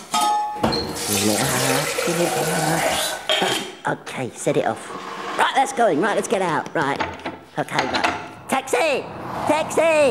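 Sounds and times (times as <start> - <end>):
water gushing from a tap into a kettle: 0.8 - 3.6
speech: 1.1 - 10.1.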